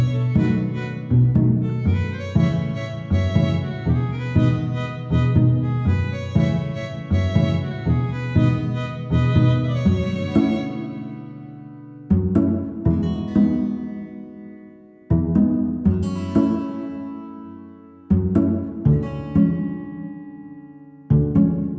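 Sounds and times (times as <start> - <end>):
guitar playing in an empty museum: 0.0 - 21.7.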